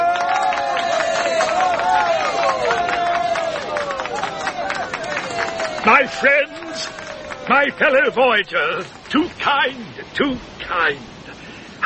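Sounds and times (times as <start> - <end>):
crowd shouting and cheering: 0.0 - 9.3
speech: 5.9 - 6.5, 7.5 - 11.1.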